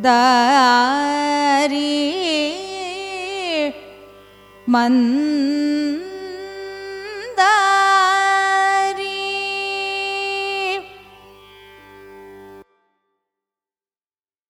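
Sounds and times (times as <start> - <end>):
Carnatic music in raga Mandari: 0.0 - 13.2.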